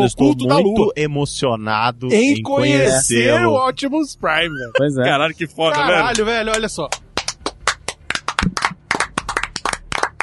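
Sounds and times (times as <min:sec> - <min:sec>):
speech: 0:00.0 - 0:07.0
hand clapping: 0:05.7 - 0:10.2.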